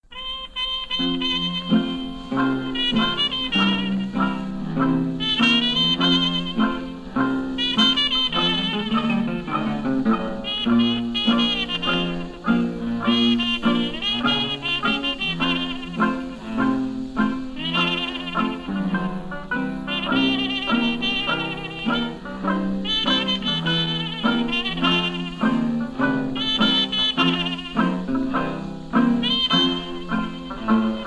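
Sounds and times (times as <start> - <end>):
string band playing: 0.0 - 31.0.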